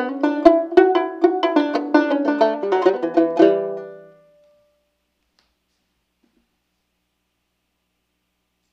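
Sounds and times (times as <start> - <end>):
jig tune: 0.0 - 4.6.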